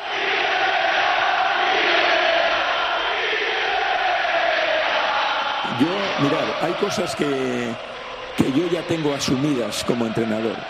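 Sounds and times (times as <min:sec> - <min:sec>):
Real Betis football fans chanting against their coach at the Benito Villamarín stadium: 0:00.0 - 0:10.6
speech: 0:06.2 - 0:10.6.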